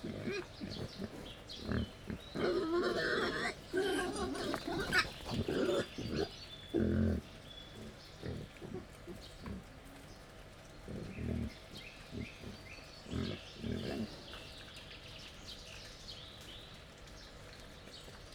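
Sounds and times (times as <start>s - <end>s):
captive wild boar grunting while feeding: 0.0s - 9.7s, 10.9s - 14.4s.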